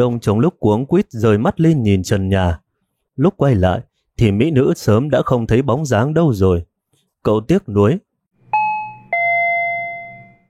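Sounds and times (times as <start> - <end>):
speech: 0.0 - 2.6, 3.2 - 8.1
doorbell ringing a two-note chime: 8.5 - 10.4.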